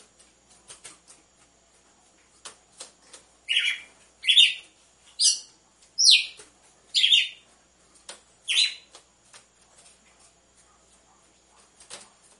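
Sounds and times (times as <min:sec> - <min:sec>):
red-cowled cardinal chirping: 0:03.5 - 0:07.4, 0:08.5 - 0:08.9.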